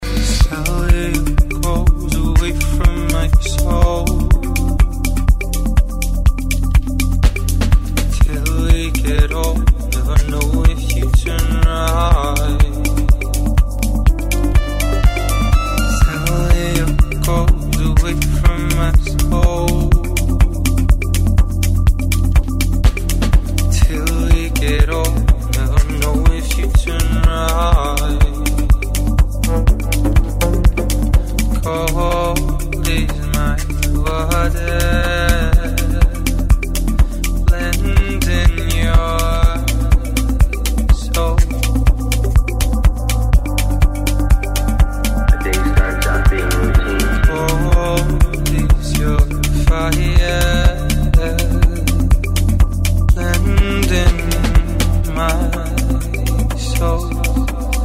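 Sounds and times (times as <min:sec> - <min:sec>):
progressive melodic house music: 0:00.0 - 0:57.8.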